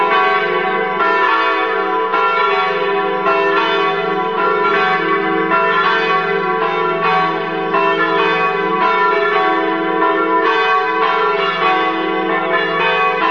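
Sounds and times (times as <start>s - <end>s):
bells ringing: 0.0s - 13.2s.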